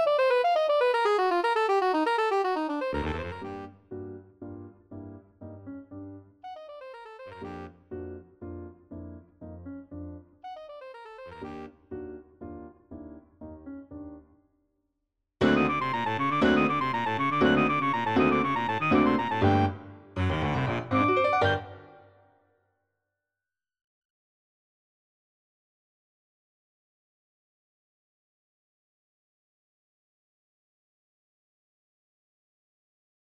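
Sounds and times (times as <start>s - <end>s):
tango music: 0.0s - 3.9s, 15.4s - 22.0s.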